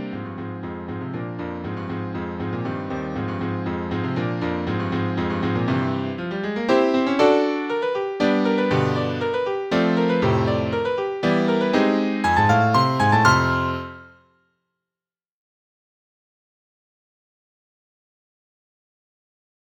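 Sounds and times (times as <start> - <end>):
folk tune on piano: 0.0 - 14.3.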